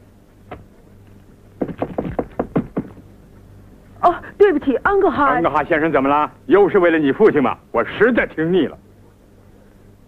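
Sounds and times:
low steady hum: 0:00.0 - 0:10.0
knocking on a door: 0:01.6 - 0:03.1
speech: 0:04.6 - 0:08.8.

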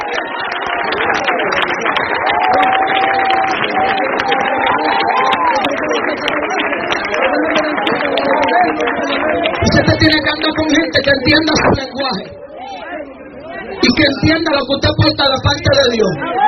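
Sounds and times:
audience applauding: 0:00.0 - 0:11.2
speech: 0:11.0 - 0:12.4, 0:14.1 - 0:16.4.

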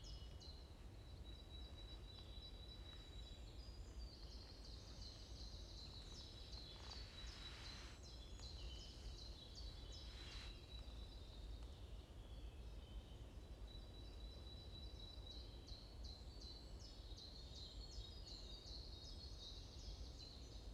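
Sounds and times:
faint rustling: 0:00.0 - 0:10.9
small birds chirping: 0:00.0 - 0:20.7.

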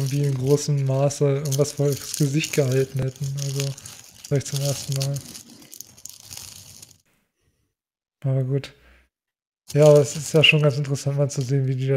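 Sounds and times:
rustling and crinkling: 0:00.0 - 0:07.0, 0:09.7 - 0:11.9
speech: 0:00.1 - 0:05.5, 0:08.2 - 0:08.8, 0:09.7 - 0:11.9.

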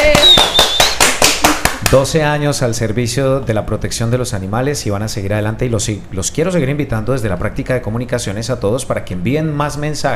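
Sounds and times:
applause: 0:00.0 - 0:02.0
speech: 0:01.9 - 0:10.1.

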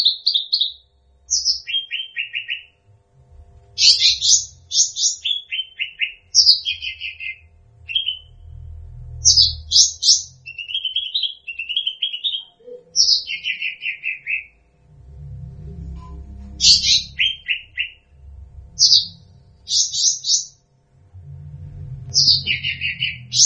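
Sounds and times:
bird singing: 0:00.0 - 0:02.8, 0:03.8 - 0:14.7, 0:15.4 - 0:20.6, 0:22.1 - 0:23.4
low hum: 0:02.7 - 0:04.8, 0:06.2 - 0:10.9, 0:14.5 - 0:23.4.

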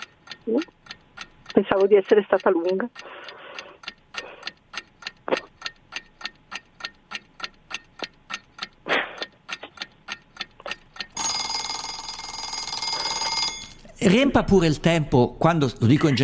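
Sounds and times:
countdown clock ticking, timing a contestant's turn: 0:00.0 - 0:16.2
speech: 0:00.5 - 0:00.7, 0:01.6 - 0:03.4, 0:14.1 - 0:16.2
loud sustained buzzing alarm: 0:11.2 - 0:13.8.

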